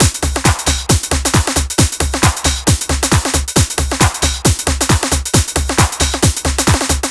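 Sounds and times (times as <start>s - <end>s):
drum loop: 0.0s - 7.0s.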